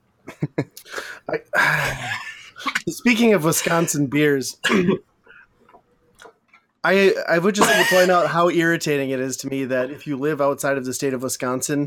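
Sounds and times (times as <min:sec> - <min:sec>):
person snorting: 0:00.8 - 0:02.9, 0:03.5 - 0:04.0
speech: 0:01.3 - 0:02.3, 0:02.9 - 0:05.1, 0:06.8 - 0:11.8.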